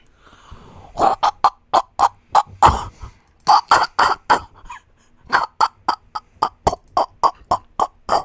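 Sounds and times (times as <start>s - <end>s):
person imitating an aardvark with pig-like grunts and snorts: 1.0s - 8.2s.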